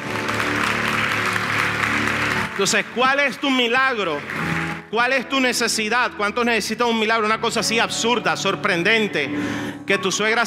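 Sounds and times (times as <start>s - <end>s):
audience applause: 0.0s - 4.9s
speech: 2.6s - 10.4s.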